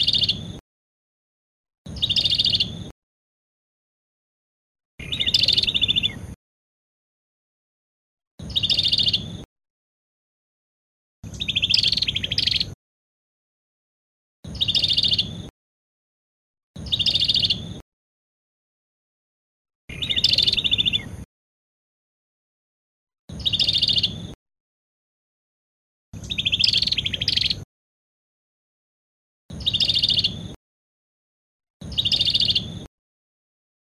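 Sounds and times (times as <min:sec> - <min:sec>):
Cambodian prinia bird singing: 0:00.0 - 0:00.5, 0:01.9 - 0:02.8, 0:05.0 - 0:06.4, 0:08.4 - 0:09.4, 0:11.2 - 0:12.8, 0:14.5 - 0:15.5, 0:16.8 - 0:17.8, 0:19.9 - 0:21.2, 0:23.3 - 0:24.4, 0:26.2 - 0:27.6, 0:29.5 - 0:30.5, 0:31.8 - 0:32.9.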